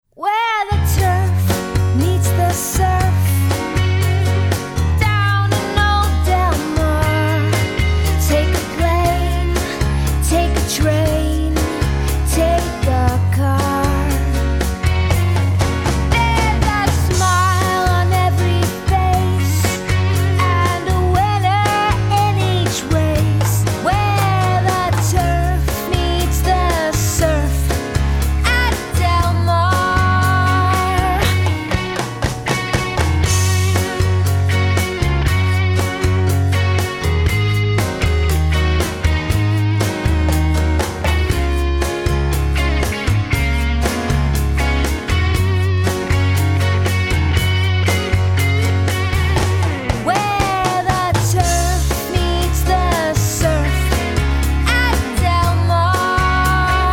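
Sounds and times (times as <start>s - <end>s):
latin rock music: 0.7s - 56.9s.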